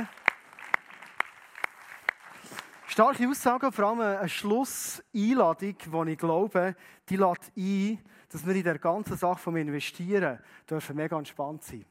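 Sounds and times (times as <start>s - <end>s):
slow clapping: 0.0s - 3.1s
speech: 3.0s - 11.8s.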